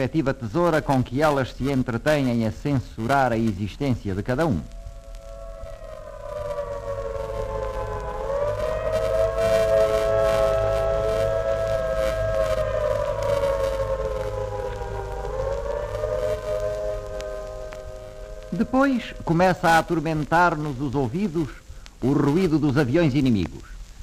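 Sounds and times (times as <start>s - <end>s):
speech: 0.0s - 4.8s, 18.9s - 23.7s
air raid sirens wailing: 4.3s - 21.4s.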